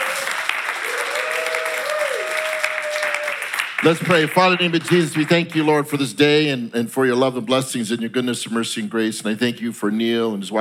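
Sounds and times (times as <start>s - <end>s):
audience applause: 0.0s - 5.7s
speech: 3.8s - 10.6s.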